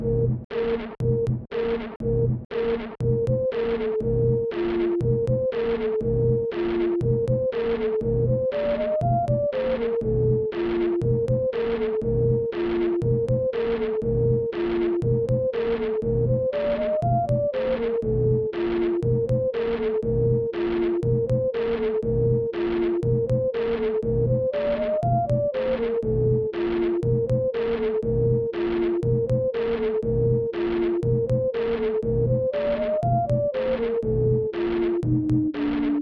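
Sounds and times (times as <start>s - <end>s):
sine wave tone: 0.0s - 35.9s.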